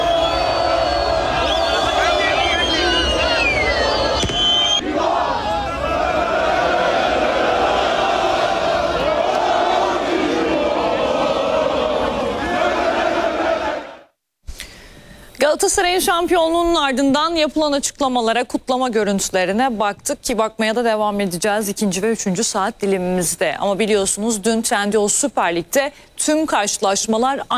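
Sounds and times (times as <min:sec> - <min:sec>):
football fans singing championship songs at title celebrations: 0:00.0 - 0:14.1
speech: 0:15.6 - 0:27.5.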